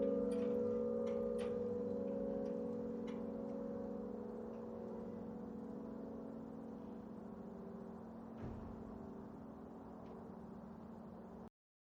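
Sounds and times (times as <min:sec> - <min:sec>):
Langholtskirkja church bells ringing: 0:00.0 - 0:07.8.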